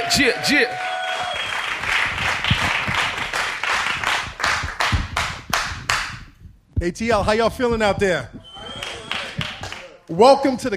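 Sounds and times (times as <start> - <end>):
live audience applauding in a recording studio: 0.0 - 6.1, 8.5 - 10.0
speech: 0.1 - 0.9, 6.8 - 8.4, 10.1 - 10.7.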